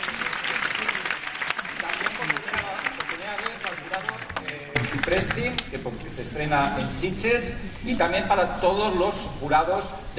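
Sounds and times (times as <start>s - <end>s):
audience applause for the jury at the Sitges film festival: 0.0s - 5.9s
speech: 5.1s - 10.1s.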